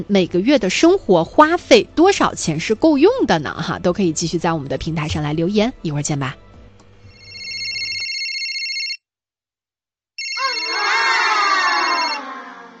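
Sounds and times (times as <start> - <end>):
speech: 0.0 - 6.4
alarm clock ringing: 7.1 - 9.0, 10.2 - 12.2.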